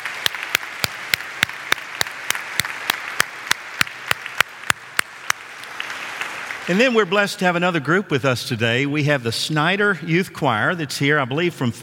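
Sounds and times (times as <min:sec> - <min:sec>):
audience applause: 0:00.0 - 0:07.1
speech: 0:06.7 - 0:11.8.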